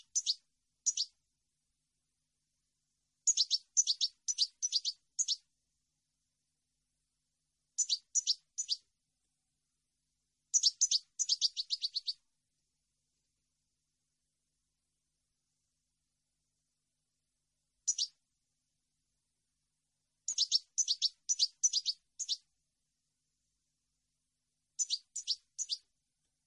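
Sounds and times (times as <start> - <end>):
European goldfinch call notes: 0.1 - 1.1, 3.3 - 5.4, 7.8 - 8.8, 10.5 - 12.2, 17.9 - 18.1, 20.3 - 22.4, 24.8 - 25.8.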